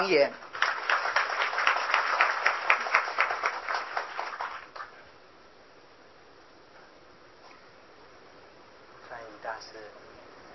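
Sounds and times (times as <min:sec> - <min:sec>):
speech: 0:00.0 - 0:00.5
audience applause: 0:00.5 - 0:05.0.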